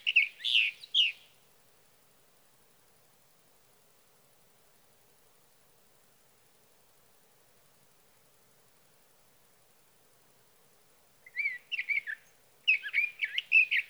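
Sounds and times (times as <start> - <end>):
sage thrasher: 0.0 - 1.2, 11.3 - 13.8.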